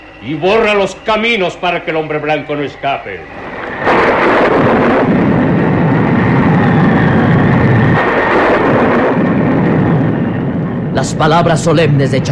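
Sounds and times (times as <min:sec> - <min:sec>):
hurricane wind: 0:00.0 - 0:12.3
speech: 0:00.2 - 0:04.0, 0:11.1 - 0:12.3
thunder: 0:03.3 - 0:12.3.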